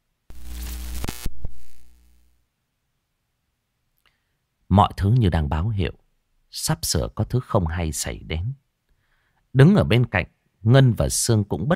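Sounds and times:
sharp electrical zapping pops: 0:00.3 - 0:02.3
electrical short-circuit buzz with crackling: 0:00.3 - 0:02.4
speech: 0:04.8 - 0:08.6, 0:09.5 - 0:11.7.

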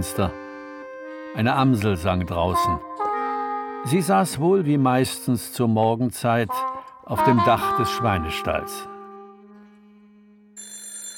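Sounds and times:
speech: 0:00.0 - 0:00.4, 0:01.3 - 0:02.9, 0:03.8 - 0:08.9
telephone ringing in the hallway: 0:10.6 - 0:11.1.

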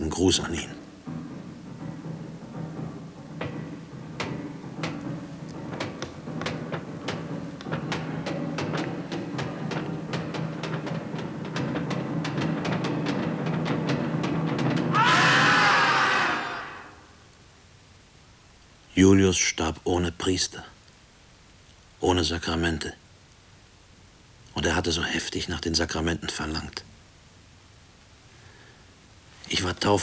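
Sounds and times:
speech: 0:00.2 - 0:00.8, 0:19.0 - 0:20.7, 0:22.0 - 0:23.0, 0:24.6 - 0:26.9, 0:29.5 - 0:30.0
dull pounding on prison cell doors: 0:00.9 - 0:17.0
man's shrill strained scream: 0:14.9 - 0:17.1.

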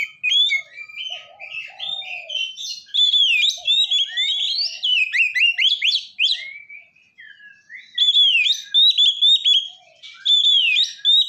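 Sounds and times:
Oriental magpie-robin whistling song: 0:00.0 - 0:11.2.

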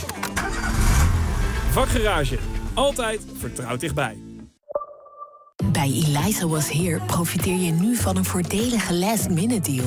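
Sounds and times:
car engine starting: 0:00.1 - 0:03.3
whining car starter motor: 0:00.2 - 0:02.8
speech: 0:01.7 - 0:04.3, 0:05.8 - 0:09.8.

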